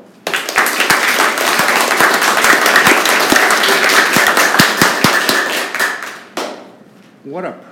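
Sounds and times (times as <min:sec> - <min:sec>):
eighth-grade class applauding during a classroom radio show: 0:00.2 - 0:06.7.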